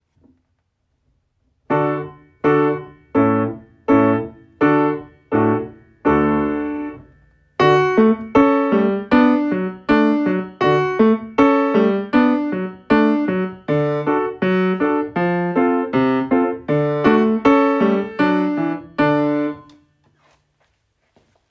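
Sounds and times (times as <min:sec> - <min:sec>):
piano: 0:01.6 - 0:19.8.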